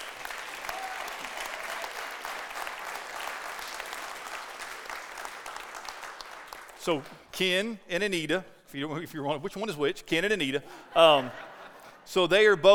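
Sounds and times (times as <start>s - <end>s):
audience applauding: 0.0s - 7.1s
speech: 6.8s - 12.7s
laughter: 10.6s - 12.7s.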